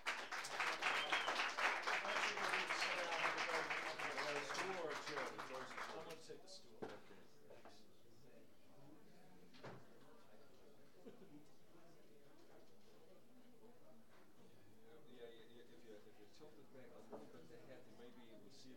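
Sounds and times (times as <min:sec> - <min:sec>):
audience applauding to welcome a musician: 0:00.0 - 0:06.2.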